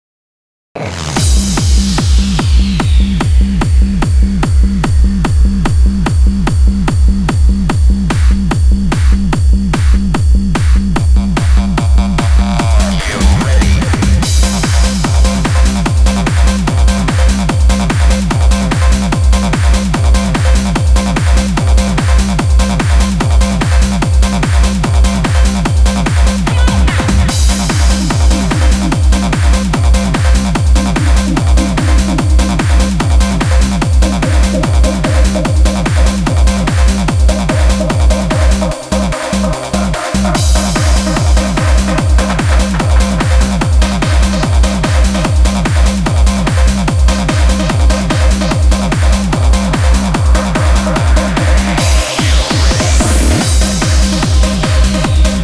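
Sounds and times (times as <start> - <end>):
trance remix: 0.8 - 55.4.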